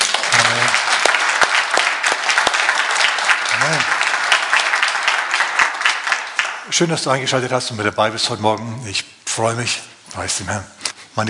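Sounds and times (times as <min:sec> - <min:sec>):
audience clapping: 0:00.0 - 0:07.6
speech: 0:06.7 - 0:11.2.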